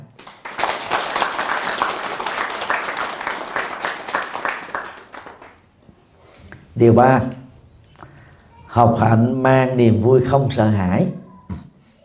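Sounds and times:
audience applause: 0.2 - 5.7
speech: 6.8 - 7.4, 8.8 - 11.2.

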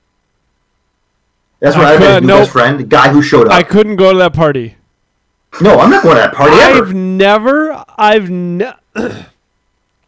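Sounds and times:
speech: 1.6 - 4.8, 5.5 - 9.3
person clearing throat: 9.0 - 9.4.

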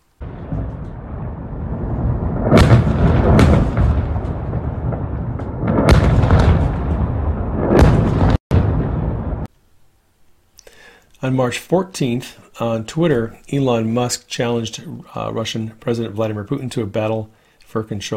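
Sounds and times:
missile blasts in an attack on the U.S. consulate in Erbil, Iraq: 0.1 - 9.5
speech: 11.2 - 18.1.

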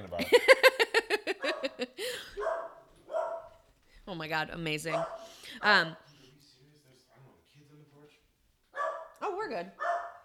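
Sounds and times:
laughter: 0.2 - 2.5
dog barking at someone at the door: 1.3 - 3.6, 4.9 - 5.3, 8.7 - 10.2
speech: 4.2 - 6.1, 9.5 - 9.9.

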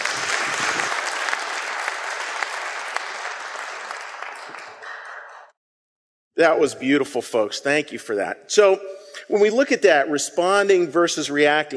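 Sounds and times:
audience applause: 0.0 - 5.5
speech: 6.4 - 11.7.

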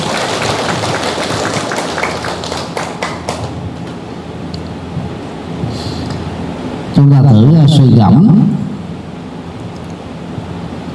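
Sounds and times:
audience applause: 0.0 - 4.0
speech: 7.0 - 8.5.

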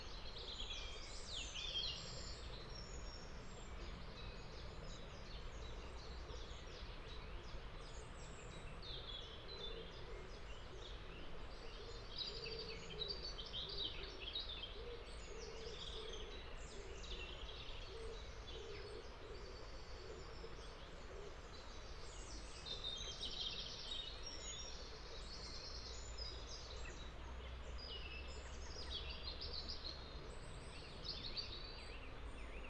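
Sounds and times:
bird chirps and song in a Derbyshire forest ravine: 0.0 - 32.6
shallow water babbling along Todd Brook in a Derbyshire forest ravine: 0.0 - 32.6.

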